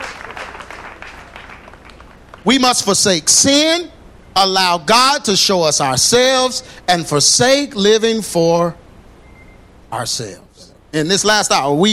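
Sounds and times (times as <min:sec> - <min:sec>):
audience clapping: 0:00.0 - 0:02.5
speech: 0:02.4 - 0:08.8, 0:09.9 - 0:11.9.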